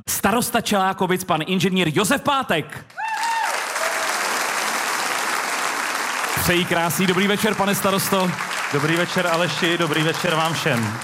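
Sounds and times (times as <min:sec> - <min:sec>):
speech: 0:00.0 - 0:03.2, 0:06.4 - 0:11.0
audience applause for arriving guest: 0:03.0 - 0:11.0.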